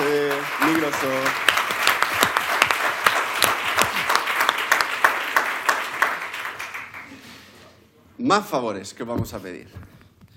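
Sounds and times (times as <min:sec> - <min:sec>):
audience applause: 0:00.0 - 0:07.5
speech: 0:00.7 - 0:01.5, 0:08.3 - 0:09.9.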